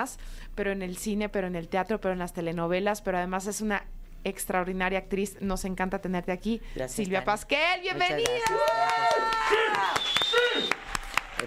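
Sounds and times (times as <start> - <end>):
speech: 0.0 - 10.8
recorded applause sound effect: 8.0 - 11.4.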